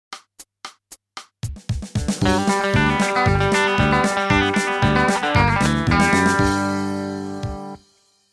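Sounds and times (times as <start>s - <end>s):
country music: 2.1s - 7.8s.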